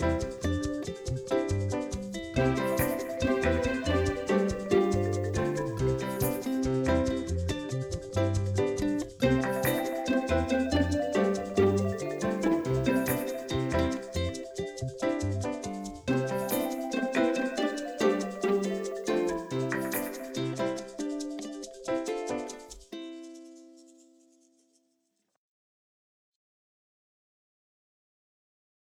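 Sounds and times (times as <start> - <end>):
quirky underscore music: 0.0 - 21.9.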